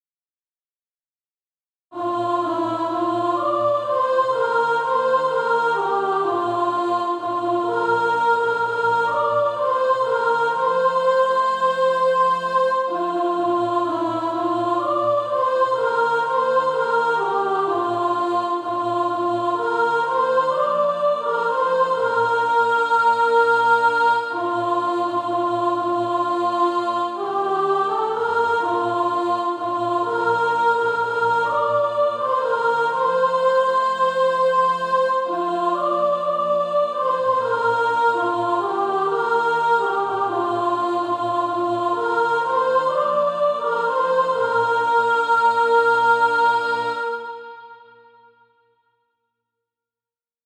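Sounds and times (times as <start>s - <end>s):
soprano singing practice music: 1.9s - 48.0s.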